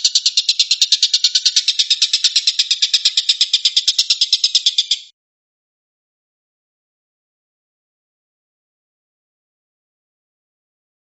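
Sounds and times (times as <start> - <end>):
stork-billed kingfisher calls: 0.0 - 5.1.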